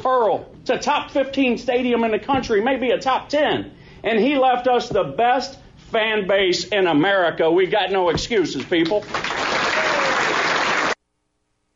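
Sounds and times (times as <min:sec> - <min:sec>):
speech: 0:00.0 - 0:09.3
crowd applause: 0:09.0 - 0:11.0.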